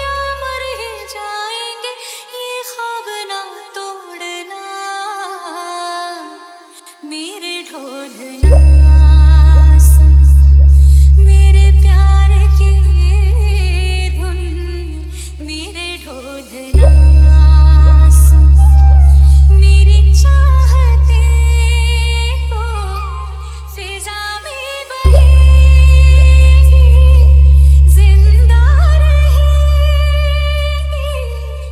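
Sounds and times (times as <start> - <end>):
Hindi song: 8.4 - 31.6.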